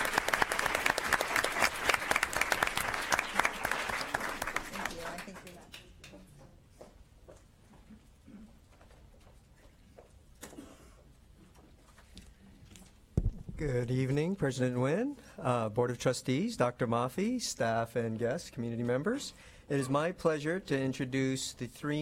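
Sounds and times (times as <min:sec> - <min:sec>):
audience applause: 0:00.0 - 0:05.6
speech: 0:13.6 - 0:21.9.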